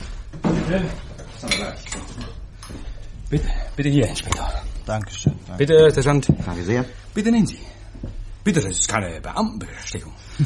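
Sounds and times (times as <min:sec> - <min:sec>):
speech: 0:00.7 - 0:10.4
drinking glasses set down clinking: 0:01.2 - 0:02.3.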